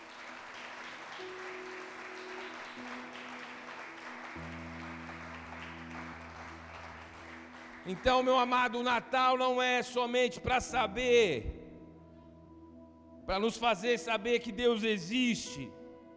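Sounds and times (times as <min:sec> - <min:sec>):
round of applause: 0:00.0 - 0:09.0
speech: 0:07.9 - 0:11.5, 0:13.3 - 0:15.8.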